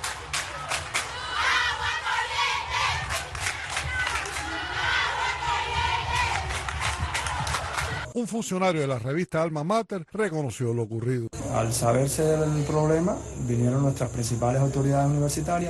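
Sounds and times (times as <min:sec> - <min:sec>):
students protesting, crowd shouting: 0:00.0 - 0:08.1
speech: 0:08.2 - 0:15.6.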